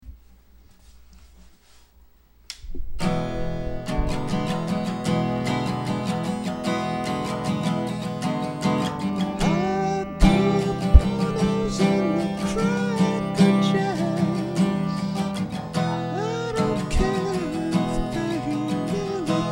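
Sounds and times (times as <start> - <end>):
acoustic song: 2.6 - 19.4.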